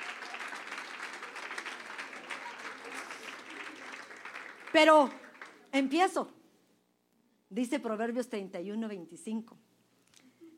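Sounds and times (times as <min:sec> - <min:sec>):
audience applause: 0:00.0 - 0:05.7
speech: 0:04.7 - 0:06.4, 0:07.5 - 0:09.6.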